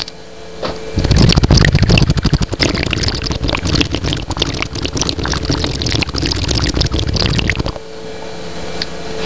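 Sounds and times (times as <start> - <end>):
bong hit bubbling: 1.0 - 7.8.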